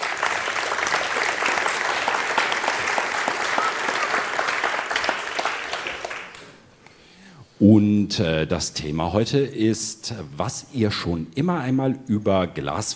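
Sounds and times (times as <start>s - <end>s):
audience applause for the speakers: 0.0s - 6.6s
speech: 7.6s - 12.9s.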